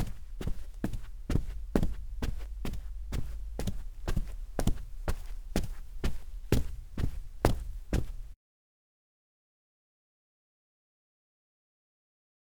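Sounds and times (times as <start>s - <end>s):
foley footsteps on carpet: 0.0s - 8.4s.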